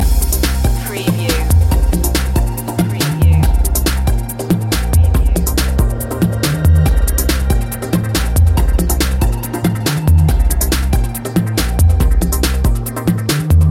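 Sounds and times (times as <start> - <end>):
electronic music loop: 0.0 - 13.6.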